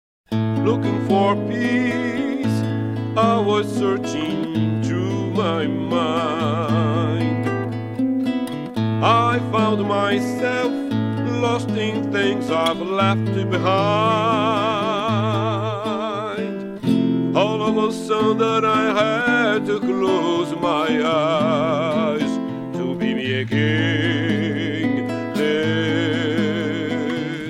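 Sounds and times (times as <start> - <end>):
guitar: 0.3 - 27.4.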